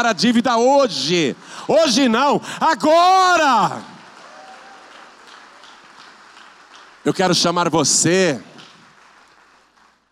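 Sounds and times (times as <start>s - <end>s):
speech: 0.0s - 3.9s, 7.0s - 8.5s
applause: 2.8s - 10.1s.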